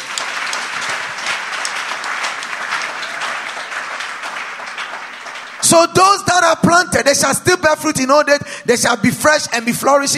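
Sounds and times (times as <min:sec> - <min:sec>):
audience clapping: 0:00.0 - 0:06.5
speech: 0:05.7 - 0:10.1.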